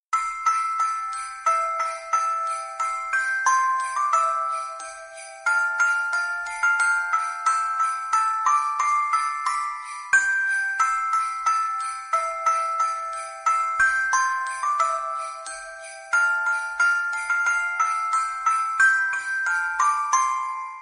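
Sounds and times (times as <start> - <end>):
Christmas jingles: 0.1 - 20.7.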